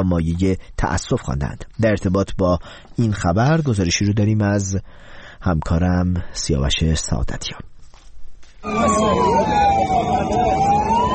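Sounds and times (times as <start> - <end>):
speech: 0.0 - 7.7
ambulance siren wailing while rushing wounded to hospital: 8.6 - 11.1
crowd noise: 8.6 - 11.1
traffic rumble: 8.6 - 11.1.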